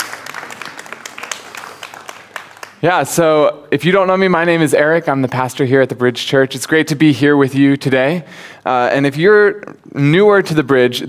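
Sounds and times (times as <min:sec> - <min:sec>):
round of applause: 0:00.0 - 0:02.8
speech: 0:02.8 - 0:11.0.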